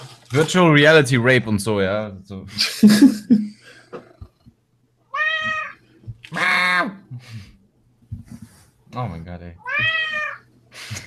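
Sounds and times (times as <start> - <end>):
speech: 0.3 - 4.0, 9.0 - 10.0, 10.9 - 11.0
laughter: 2.5 - 3.6, 10.8 - 11.0
cat meowing: 5.1 - 6.9, 9.6 - 10.5.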